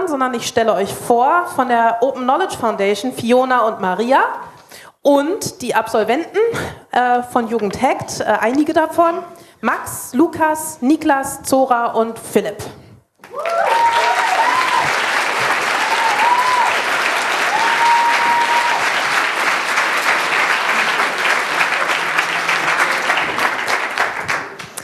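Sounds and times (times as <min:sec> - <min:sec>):
speech: 0:00.1 - 0:13.9
audience applause: 0:13.2 - 0:24.8.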